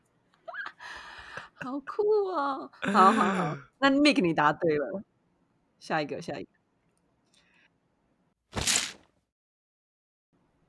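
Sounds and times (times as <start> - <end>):
speech: 1.6 - 5.1, 5.8 - 6.5
foley of curtain being drawn open: 8.6 - 9.0.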